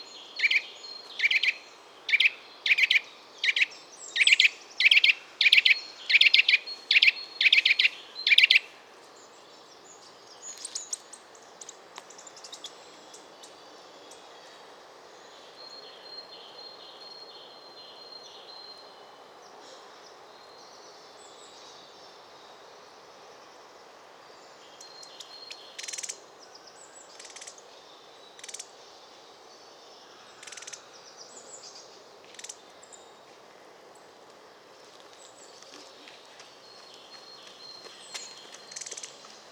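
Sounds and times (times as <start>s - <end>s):
Eurasian nuthatch Sitta europaea calling: 0.4s - 8.7s, 38.1s - 39.2s.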